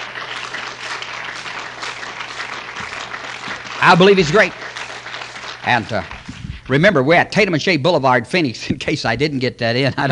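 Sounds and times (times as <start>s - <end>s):
audience hand clapping: 0.0s - 7.0s
speech: 3.8s - 4.6s, 5.6s - 6.1s, 6.7s - 10.1s.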